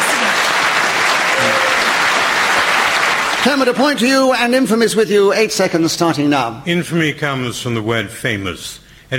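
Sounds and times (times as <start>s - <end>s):
audience applause: 0.0s - 4.1s
speech: 3.4s - 9.1s.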